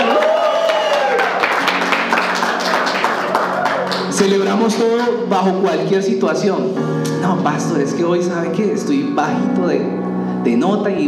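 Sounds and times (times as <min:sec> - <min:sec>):
crowd applause: 0:00.0 - 0:04.6
speech: 0:04.2 - 0:11.0.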